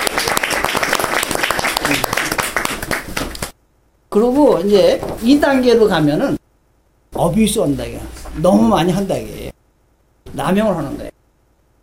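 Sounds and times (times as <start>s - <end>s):
audience applause: 0.0s - 3.5s
speech: 4.2s - 6.4s, 7.2s - 9.4s, 10.4s - 11.0s.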